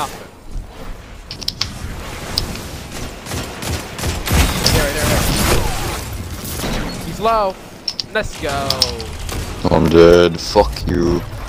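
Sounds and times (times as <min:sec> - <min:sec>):
gunfire in the video game Destiny 2: 0:01.7 - 0:10.2
speech: 0:07.2 - 0:11.3.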